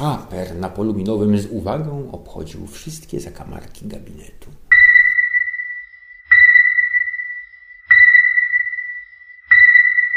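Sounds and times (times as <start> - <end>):
speech: 0.0 - 4.7
electronic detector beeping: 4.7 - 10.1.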